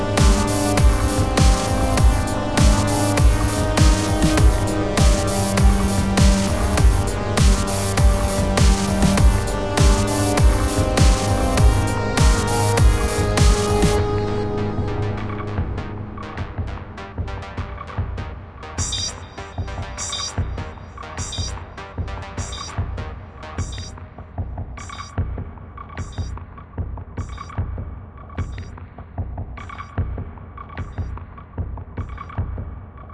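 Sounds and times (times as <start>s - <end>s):
battle music: 0.0s - 25.4s.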